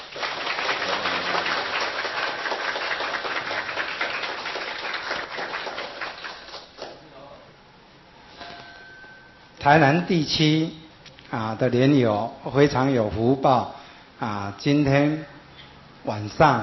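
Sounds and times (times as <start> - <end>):
warm crowd applause: 0.0 - 7.0
speech: 9.6 - 15.3, 16.0 - 16.6.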